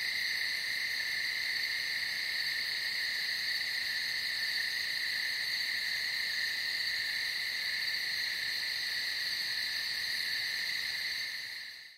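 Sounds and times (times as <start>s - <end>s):
cicadas droning: 0.0s - 11.9s.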